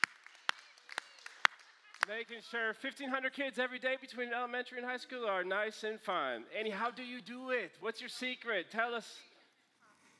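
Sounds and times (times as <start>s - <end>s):
rousing audience applause: 0.0s - 2.3s
speech: 2.1s - 9.3s.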